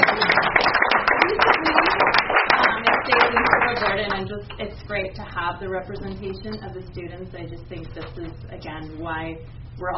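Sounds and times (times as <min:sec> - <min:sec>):
audience clapping: 0:00.0 - 0:04.3
speech: 0:04.4 - 0:09.9.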